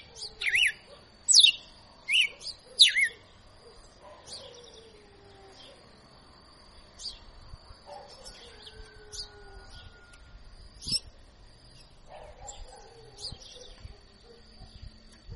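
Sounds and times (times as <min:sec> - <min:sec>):
female red-cowled cardinal singing whistled phrases in açoitando style: 0:00.0 - 0:03.2.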